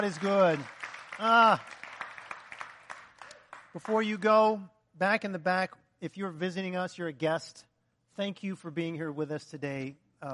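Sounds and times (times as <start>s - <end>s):
speech: 0.0s - 1.8s, 3.7s - 10.3s
audience clapping hands: 0.0s - 4.6s.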